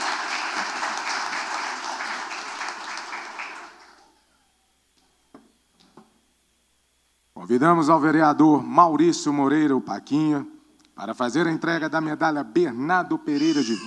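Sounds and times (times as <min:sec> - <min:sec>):
isolated claps: 0:00.0 - 0:04.2
round of applause from a crowd: 0:00.0 - 0:04.3
speech: 0:07.4 - 0:13.8.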